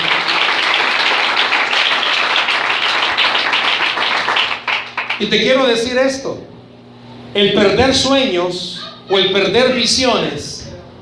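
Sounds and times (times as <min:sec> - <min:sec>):
audience applauding: 0:00.0 - 0:05.3
speech: 0:05.2 - 0:06.5, 0:07.4 - 0:10.6.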